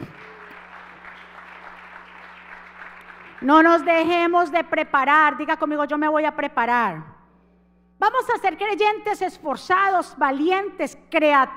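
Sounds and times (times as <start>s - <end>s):
audience applause: 0.0s - 3.7s
speech: 3.4s - 7.2s, 8.0s - 11.5s.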